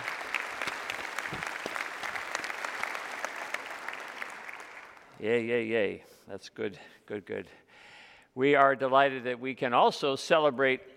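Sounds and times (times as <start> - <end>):
audience applause: 0.0 - 5.2
speech: 5.2 - 7.6, 8.4 - 10.9.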